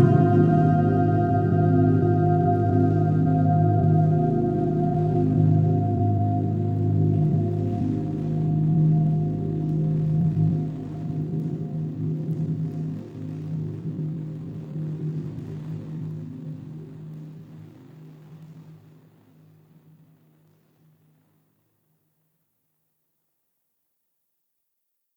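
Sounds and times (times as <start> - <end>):
obscure ambient tune: 0.0 - 13.4.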